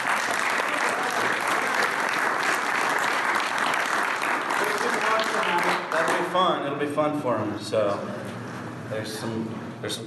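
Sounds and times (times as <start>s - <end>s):
applause: 0.0s - 6.5s
speech: 6.3s - 8.3s, 8.9s - 10.0s.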